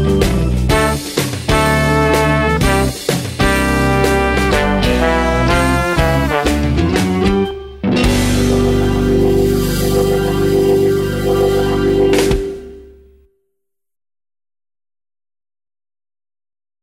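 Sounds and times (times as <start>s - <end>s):
wind band blues: 0.0s - 12.6s.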